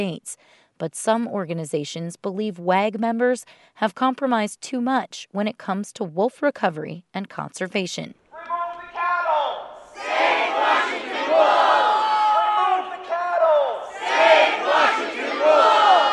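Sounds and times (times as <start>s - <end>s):
speech: 0.0s - 8.2s
protest crowd chanting and shouting: 8.6s - 16.1s.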